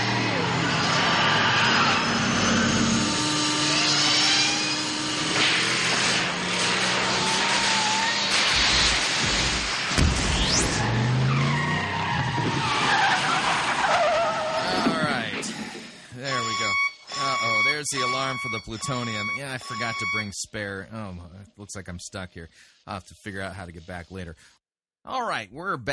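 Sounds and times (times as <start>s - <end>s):
car engine accelerating: 0.0s - 15.3s
tires squealing: 0.0s - 20.3s
speech: 18.4s - 25.9s.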